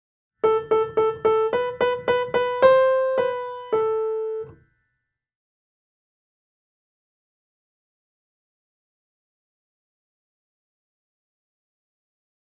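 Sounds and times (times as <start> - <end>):
nursery tune in minor key: 0.4 - 4.6.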